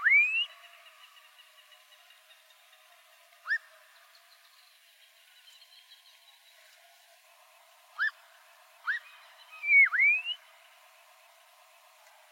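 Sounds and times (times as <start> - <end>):
black-crowned monjita dipping-then-rising whistle: 0.0 - 0.6, 3.4 - 3.7, 8.0 - 8.2, 8.8 - 10.5.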